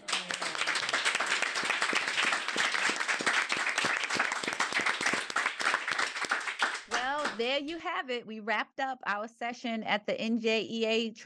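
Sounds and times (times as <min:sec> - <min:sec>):
audience applause for a panel: 0:00.0 - 0:07.4
speech: 0:07.4 - 0:11.2.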